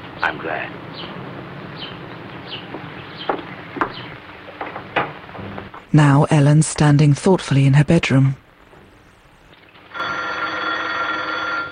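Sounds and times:
speech: 0:00.2 - 0:03.4, 0:05.9 - 0:08.4
telephone bell ringing in a household: 0:09.9 - 0:11.7.

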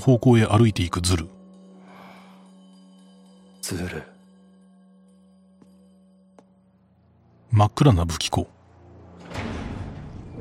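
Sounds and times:
speech: 0:00.0 - 0:01.4, 0:03.7 - 0:04.1, 0:07.5 - 0:08.6
door opening: 0:09.1 - 0:10.3.

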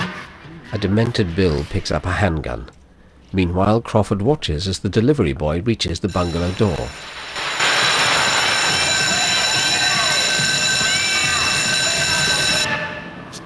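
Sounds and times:
speech: 0:00.7 - 0:07.4
old electric bell ringing: 0:06.1 - 0:12.7.

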